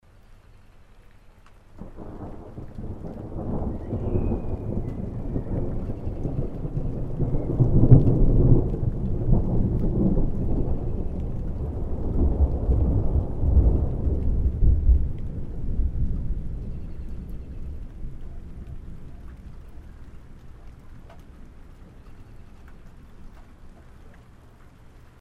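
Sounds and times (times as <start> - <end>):
thunder: 1.8 - 21.5.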